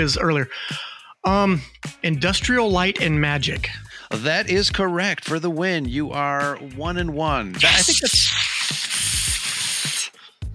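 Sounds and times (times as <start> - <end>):
speech: 0.0 - 8.3
steak sizzling in a pan: 7.7 - 10.2.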